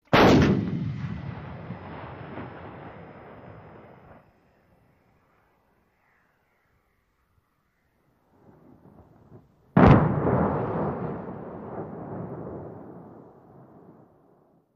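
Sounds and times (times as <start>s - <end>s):
8-inch howitzer firing: 0.1s - 3.8s, 9.8s - 13.5s
distant explosion impact: 0.1s - 4.2s, 8.8s - 14.1s.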